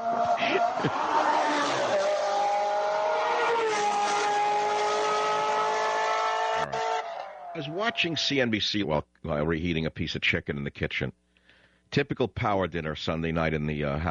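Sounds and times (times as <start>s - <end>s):
Ferrari race car going around a racetrack: 0.0s - 8.3s
speech: 0.5s - 1.1s, 7.6s - 11.2s, 11.9s - 14.0s.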